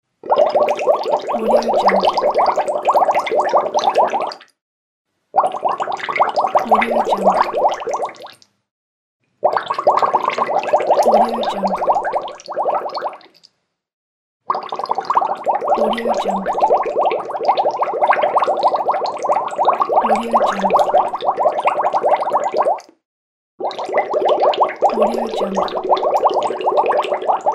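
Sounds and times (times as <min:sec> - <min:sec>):
bubbles: 0:00.2 - 0:04.6, 0:05.4 - 0:08.5, 0:09.4 - 0:13.4, 0:14.5 - 0:23.0, 0:23.6 - 0:27.5.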